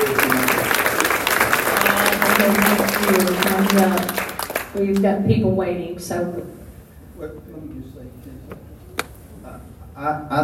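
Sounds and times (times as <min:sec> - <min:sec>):
audience applause: 0:00.0 - 0:05.0
speech: 0:03.2 - 0:06.6, 0:07.2 - 0:08.6, 0:10.0 - 0:10.4.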